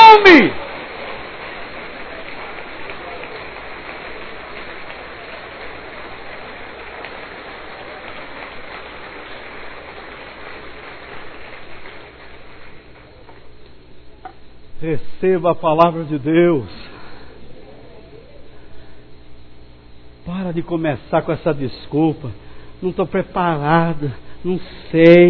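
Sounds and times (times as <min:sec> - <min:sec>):
audience applauding: 0:00.0 - 0:13.4
speech: 0:14.9 - 0:16.9, 0:20.5 - 0:25.2.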